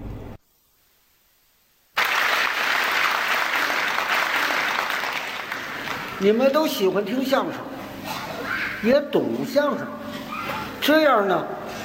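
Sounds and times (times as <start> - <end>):
crowd audience applause: 2.0 - 6.4
speech: 6.2 - 7.8, 8.8 - 10.0, 10.9 - 11.6.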